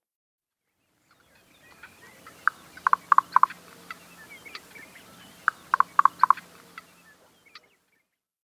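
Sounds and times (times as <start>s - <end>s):
Chihuahuan raven giving harsh croaking caws: 2.4s - 4.7s, 5.4s - 6.9s.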